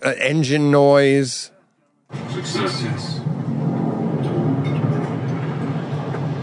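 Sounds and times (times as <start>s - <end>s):
speech: 0.0s - 1.5s, 2.1s - 3.3s
metal creaking and clinking on ship: 2.2s - 6.4s.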